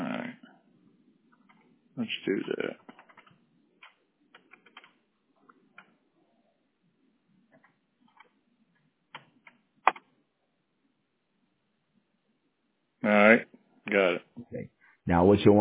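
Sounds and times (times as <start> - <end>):
speech: 2.0 - 3.0, 15.3 - 15.5
typing a query into a Google search bar on a computer keyboard: 2.5 - 6.0, 7.5 - 8.4, 9.1 - 10.1.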